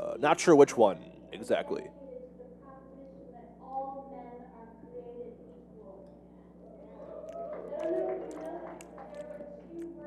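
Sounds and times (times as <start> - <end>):
speech: 0.2 - 2.0
crowd cheering at a political rally: 6.7 - 9.7
scattered claps and whoops: 7.0 - 9.5.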